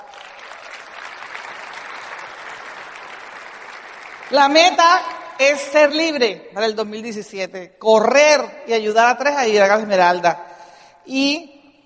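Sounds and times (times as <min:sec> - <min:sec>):
applause: 0:00.0 - 0:05.7
speech: 0:04.3 - 0:11.5.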